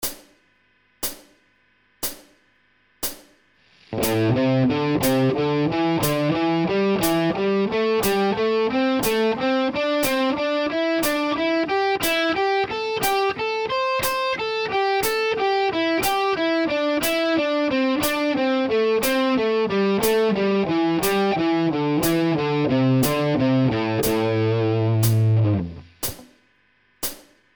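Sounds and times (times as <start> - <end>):
guitar playing pentatonic triplets: 3.9 - 25.9.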